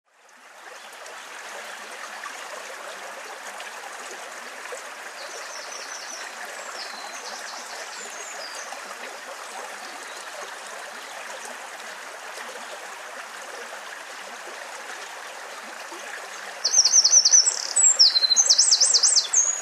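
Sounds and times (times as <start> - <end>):
river: 0.1 - 19.5.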